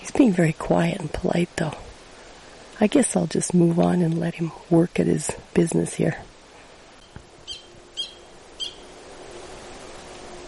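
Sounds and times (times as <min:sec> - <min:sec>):
faint steady hiss: 0:00.0 - 0:10.4
speech: 0:00.2 - 0:01.8, 0:02.8 - 0:06.3
frog chirping calls: 0:07.0 - 0:08.9.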